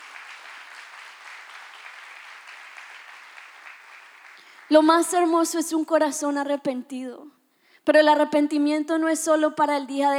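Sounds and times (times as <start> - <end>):
audience applause: 0.0 - 4.8
speech: 4.7 - 10.1.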